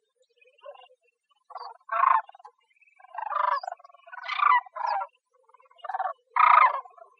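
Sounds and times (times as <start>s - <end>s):
bird giving harsh raspy squawks: 1.5s - 5.1s, 5.8s - 7.1s.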